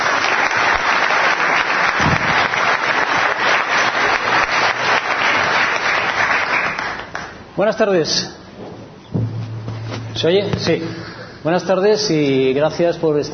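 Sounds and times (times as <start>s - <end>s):
loud welcoming applause from audience: 0.0s - 7.4s
speech: 7.6s - 8.4s, 10.2s - 13.3s.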